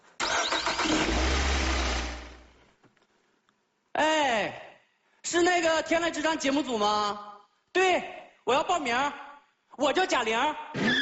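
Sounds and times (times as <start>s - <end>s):
car engine starting and idling: 0.2s - 2.5s
speech: 5.8s - 9.2s, 9.8s - 10.9s.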